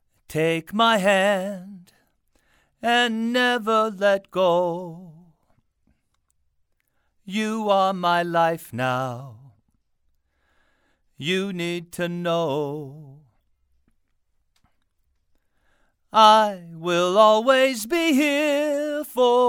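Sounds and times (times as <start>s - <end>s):
male vocals: 0.2s - 2.1s, 2.8s - 5.6s, 7.2s - 9.6s, 11.1s - 13.4s, 16.1s - 19.4s.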